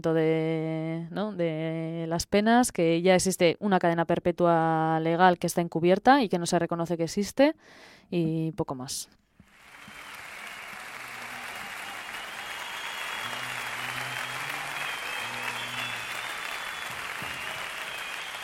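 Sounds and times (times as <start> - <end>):
speech: 0.0 - 9.2
crowd applauding: 9.5 - 18.4
whistling: 9.6 - 18.4.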